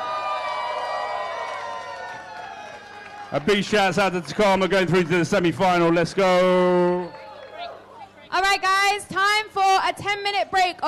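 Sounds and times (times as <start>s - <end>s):
audience cheering and applause: 0.0s - 7.7s
speech: 3.3s - 7.2s, 8.5s - 10.8s.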